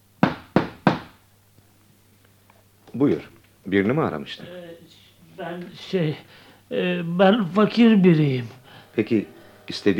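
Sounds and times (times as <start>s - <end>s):
knocking on a door: 0.2s - 1.2s
speech: 3.0s - 9.9s.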